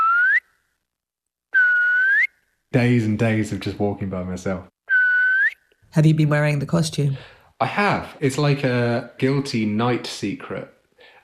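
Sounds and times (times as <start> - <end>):
person whistling echoing through pine forest: 0.0 - 0.4, 1.6 - 2.3, 4.9 - 5.6
speech: 2.7 - 4.7, 5.9 - 11.2.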